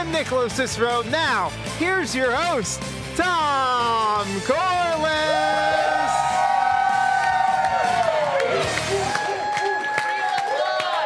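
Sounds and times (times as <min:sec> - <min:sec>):
speech: 0:00.1 - 0:06.2
live audience applause: 0:05.7 - 0:11.0.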